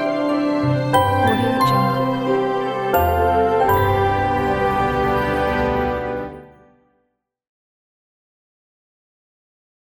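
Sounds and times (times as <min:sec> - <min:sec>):
classic logo sound: 0:00.2 - 0:06.5.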